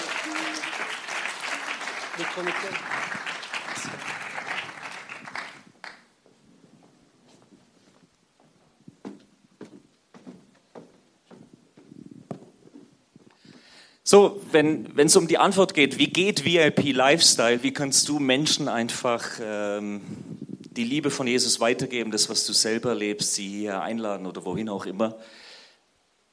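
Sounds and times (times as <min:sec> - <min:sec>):
audience applause: 0:00.0 - 0:06.1
speech: 0:02.2 - 0:04.1, 0:14.1 - 0:25.4.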